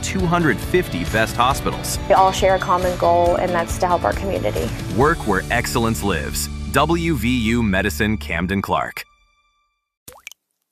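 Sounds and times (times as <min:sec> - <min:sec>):
speech: 0:00.1 - 0:09.1
unaged whiskey dripping: 0:10.1 - 0:10.7.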